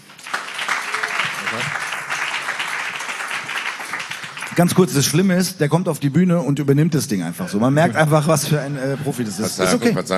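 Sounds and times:
crowd applauding: 0.0 - 5.4
speech: 4.6 - 10.1.

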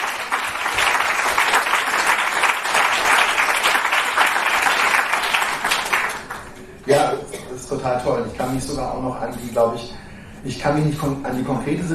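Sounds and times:
group applause: 0.0 - 6.6
speech: 7.8 - 11.9.

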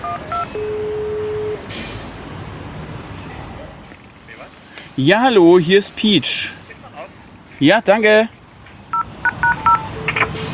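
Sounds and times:
intercom doorbell keypad beeps: 0.0 - 1.6, 9.0 - 10.5
intercom doorbell ringing tone: 0.0 - 1.7, 9.0 - 10.5
traffic rumble: 0.0 - 10.5
speech: 5.0 - 6.6, 7.6 - 8.4.

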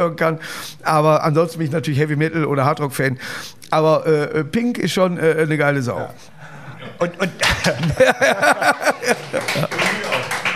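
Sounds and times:
speech: 0.0 - 10.1
laughter and voices: 6.8 - 10.3
men clapping their hands: 7.4 - 10.5.

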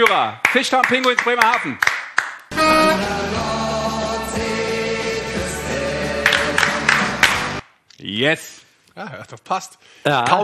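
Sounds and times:
speech: 0.0 - 2.0, 8.0 - 10.4
hands clapping in rhythm: 0.0 - 2.5, 6.1 - 7.7
loud continuous music: 2.5 - 7.6.

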